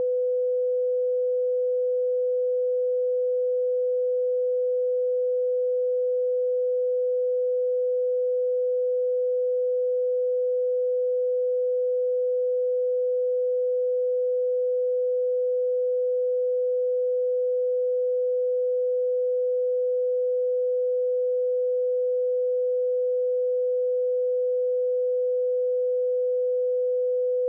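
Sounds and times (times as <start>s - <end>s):
500 Hz sine tone: 0.0s - 27.4s.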